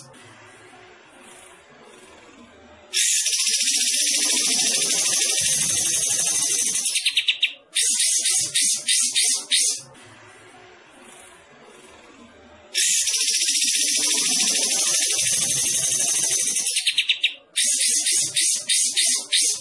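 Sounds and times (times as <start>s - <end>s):
bulbul singing rapid bright chattering notes: 3.0s - 9.8s, 12.8s - 19.5s.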